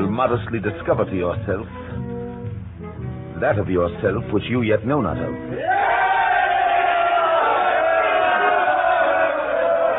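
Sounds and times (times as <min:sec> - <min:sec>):
speech: 0:00.2 - 0:01.8, 0:03.4 - 0:05.8
large crowd shouting and roaring: 0:05.6 - 0:09.9.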